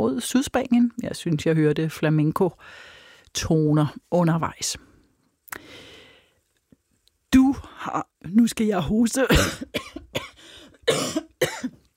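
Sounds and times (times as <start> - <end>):
speech: 0.0 - 4.9, 7.3 - 10.0, 10.9 - 11.3
person coughing from something caught in throat: 9.3 - 11.8.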